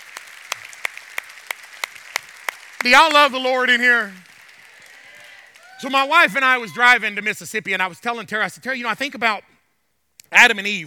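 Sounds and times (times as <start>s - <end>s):
group clapping hands in a steady rhythm: 0.0s - 6.6s
speech: 2.8s - 4.3s, 5.8s - 9.5s, 10.3s - 10.8s.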